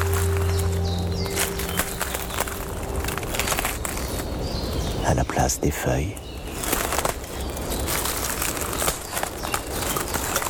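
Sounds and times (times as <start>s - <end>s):
footsteps on dry twigs and branches: 0.0s - 5.1s, 6.2s - 10.4s
low hum: 0.0s - 5.1s
speech: 5.1s - 6.2s.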